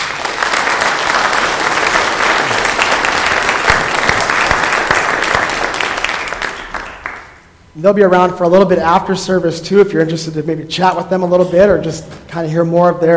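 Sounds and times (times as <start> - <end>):
audience applause: 0.0 - 7.4
speech: 7.8 - 13.1.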